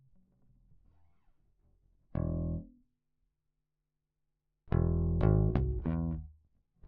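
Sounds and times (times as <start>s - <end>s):
bass: 2.1s - 2.8s, 4.7s - 6.8s.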